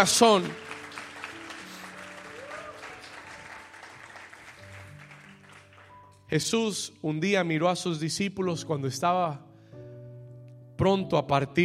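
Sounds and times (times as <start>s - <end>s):
speech: 0.0s - 0.6s, 6.3s - 9.5s, 10.8s - 11.6s
audience applauding: 0.0s - 6.1s.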